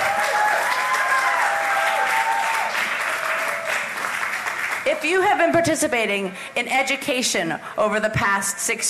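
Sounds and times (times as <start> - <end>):
audience applause: 0.0 - 4.9
speech: 4.9 - 8.8.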